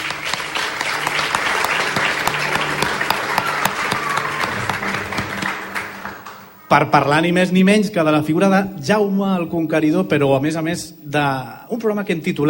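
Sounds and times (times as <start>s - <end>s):
live audience applause: 0.0s - 6.6s
speech: 6.7s - 12.4s.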